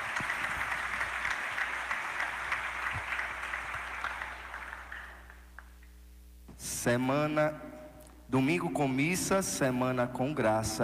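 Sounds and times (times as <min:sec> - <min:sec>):
audience applause: 0:00.0 - 0:05.7
speech: 0:06.8 - 0:07.7, 0:08.3 - 0:10.8.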